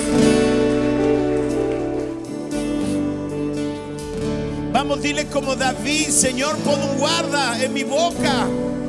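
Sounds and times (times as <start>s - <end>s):
audience applauding: 0.0s - 3.3s
speech: 4.8s - 8.8s.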